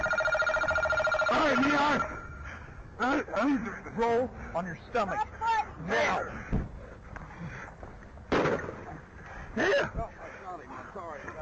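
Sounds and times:
noise: 0.0s - 11.4s
speech: 1.4s - 2.1s, 3.0s - 6.6s, 9.6s - 10.2s
gunshots fired by a police officer during a struggle over a taser: 8.3s - 8.9s.

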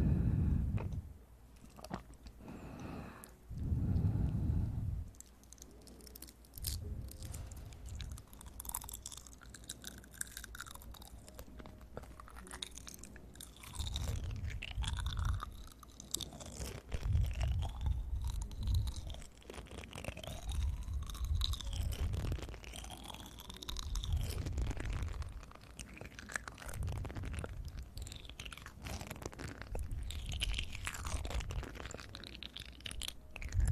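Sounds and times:
rhythmic smacking and sucking: 0.2s - 33.6s
wet chewing and crunching: 1.6s - 33.6s.

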